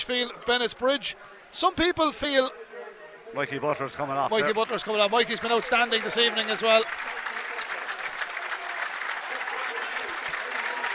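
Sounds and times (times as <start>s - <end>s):
speech: 0.0s - 2.6s, 3.3s - 7.2s
murmur of voices: 0.0s - 10.9s
large crowd applauding: 4.3s - 10.9s.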